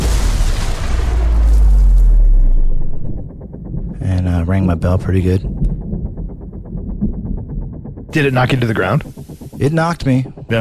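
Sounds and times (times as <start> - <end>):
incoming artillery round explosion: 0.0 - 2.9
speech: 4.6 - 5.9, 8.2 - 10.6.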